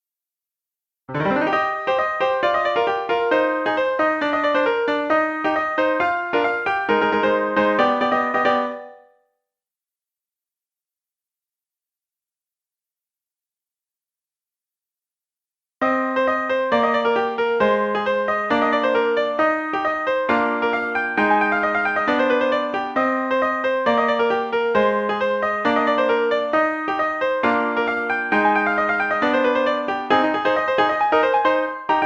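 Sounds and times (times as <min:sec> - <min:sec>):
piano: 0:01.1 - 0:09.2, 0:15.8 - 0:32.0.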